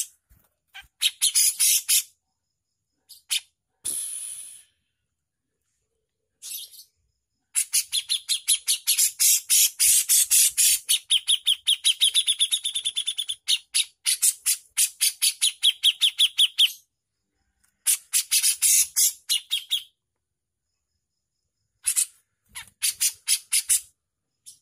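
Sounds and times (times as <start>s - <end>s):
Javan bush lark song with high sharp chirps and buzzy bursts: 0.8s - 2.3s, 6.4s - 17.0s, 17.8s - 20.0s, 21.6s - 24.5s.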